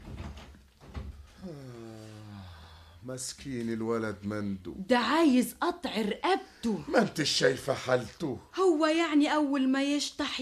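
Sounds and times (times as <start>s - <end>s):
door being closed: 0.0s - 1.4s
speech: 3.1s - 10.4s.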